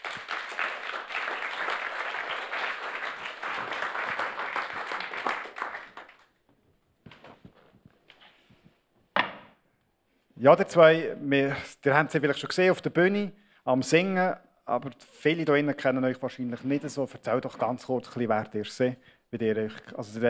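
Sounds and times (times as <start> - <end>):
audience applause: 0.0 - 6.3
speech: 10.4 - 20.2.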